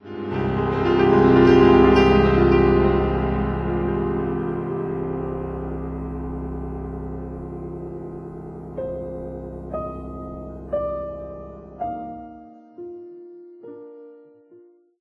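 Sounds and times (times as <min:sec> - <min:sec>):
piano music: 0:00.0 - 0:15.0.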